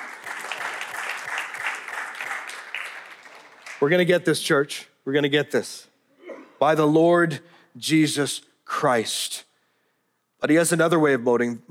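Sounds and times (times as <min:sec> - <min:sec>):
crowd clapping: 0:00.0 - 0:04.2
speech: 0:03.8 - 0:05.9, 0:06.6 - 0:09.5, 0:10.4 - 0:11.7.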